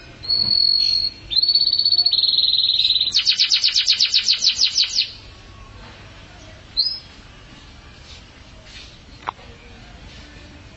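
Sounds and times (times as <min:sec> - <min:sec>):
Atlantic canary singing: 0:00.0 - 0:07.4.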